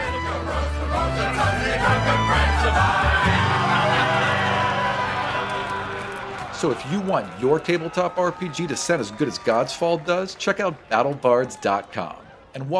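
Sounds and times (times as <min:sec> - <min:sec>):
group of voices singing at a fantasy campfire sing-along: 0:00.0 - 0:06.1
laughter: 0:01.4 - 0:09.3
speech: 0:06.6 - 0:12.7.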